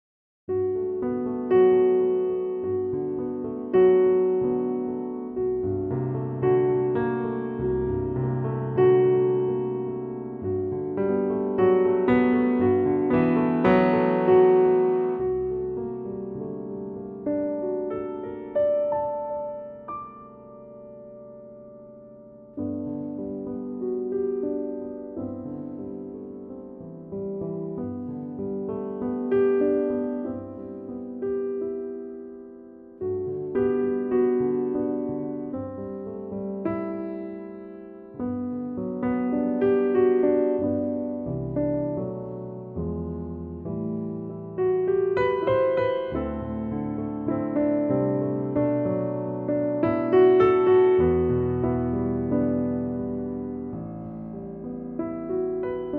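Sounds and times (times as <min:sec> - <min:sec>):
piano G note: 0:00.5 - 0:55.9.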